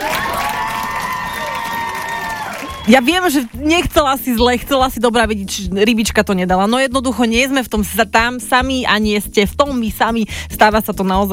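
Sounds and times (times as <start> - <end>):
audience applause and cheering: 0.0 - 3.6
speech: 2.9 - 11.3.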